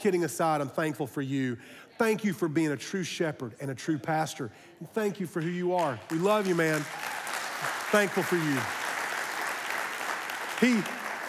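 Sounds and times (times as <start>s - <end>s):
speech: 0.0s - 8.8s, 10.6s - 11.0s
audience clapping: 5.2s - 11.2s
whoop of cheering: 6.8s - 7.5s.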